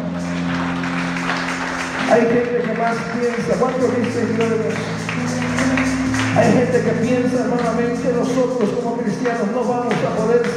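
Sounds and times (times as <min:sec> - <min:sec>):
audience applause: 0:00.0 - 0:06.7
speech: 0:02.1 - 0:05.5, 0:06.4 - 0:10.5.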